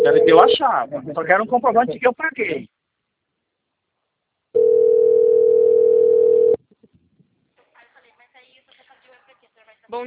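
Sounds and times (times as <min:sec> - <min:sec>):
telephone ringing tone: 0:00.0 - 0:00.6, 0:04.6 - 0:06.6
speech: 0:00.3 - 0:02.8.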